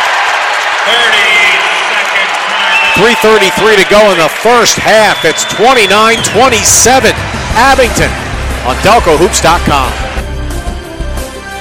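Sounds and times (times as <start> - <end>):
Coatesville basketball crowd cheering in gym: 0.0 - 10.2
speech: 0.8 - 1.3, 3.0 - 10.1.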